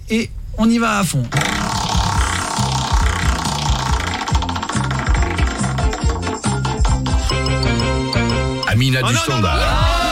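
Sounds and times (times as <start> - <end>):
speech: 0.1 - 1.8, 8.8 - 10.0
prize wheel spinning and clicking: 1.5 - 8.9.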